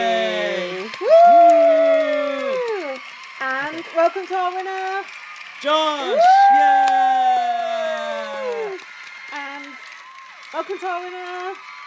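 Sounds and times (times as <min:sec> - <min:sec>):
person imitating a crowd cheering with a sliding cheer: 0:00.0 - 0:03.0, 0:05.7 - 0:08.8
speech: 0:04.0 - 0:07.0, 0:10.6 - 0:11.7.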